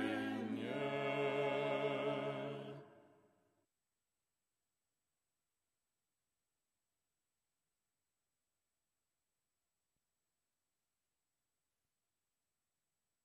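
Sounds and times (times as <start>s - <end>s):
ensemble chanting lucernaire stichera: 0.0s - 3.0s.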